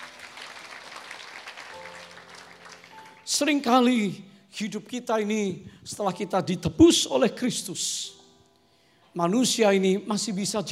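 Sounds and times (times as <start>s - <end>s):
applause: 0.0s - 3.7s
speech: 3.3s - 8.2s, 9.2s - 10.7s.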